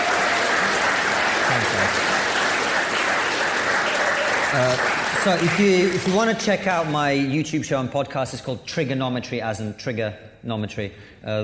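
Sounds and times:
audience round of applause: 0:00.0 - 0:06.9
speech: 0:04.6 - 0:11.4.

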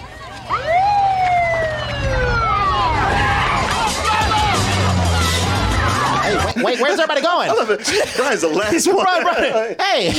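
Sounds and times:
police siren wailing: 0:00.0 - 0:06.5
indistinct voices: 0:00.0 - 0:06.7
vehicle noise: 0:00.0 - 0:06.7
laughter: 0:03.7 - 0:10.1
speech: 0:06.6 - 0:10.1.

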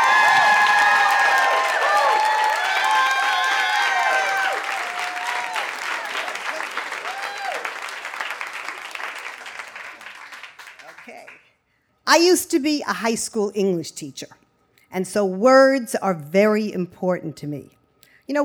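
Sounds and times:
high cheers and whoops: 0:00.0 - 0:07.9
audience applause: 0:00.0 - 0:11.4
speech: 0:12.1 - 0:18.4.

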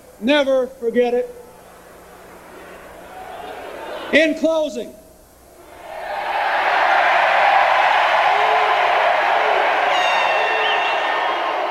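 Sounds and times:
speech: 0:00.2 - 0:01.4, 0:04.1 - 0:05.0
convention crowd cheering loudly: 0:02.6 - 0:04.2, 0:05.6 - 0:11.6
convention crowd applauding: 0:05.7 - 0:11.6.

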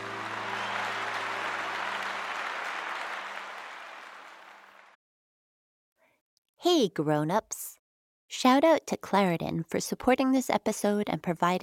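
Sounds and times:
crowd applauding: 0:00.0 - 0:05.0
speech: 0:06.6 - 0:11.6.

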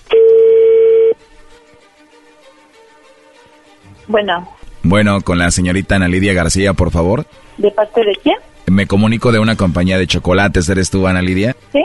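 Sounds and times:
electronic phone beep while dialing a number: 0:00.1 - 0:01.2
speech: 0:04.1 - 0:11.8.

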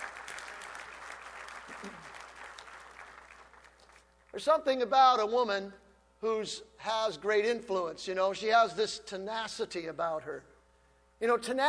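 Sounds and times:
audience clapping: 0:00.0 - 0:04.3
speech: 0:04.4 - 0:10.5, 0:11.2 - 0:11.6.

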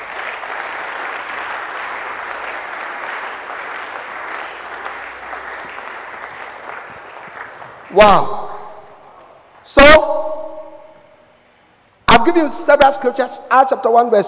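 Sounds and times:
audience applause: 0:00.0 - 0:08.0
speech: 0:07.9 - 0:08.5, 0:12.2 - 0:14.2.

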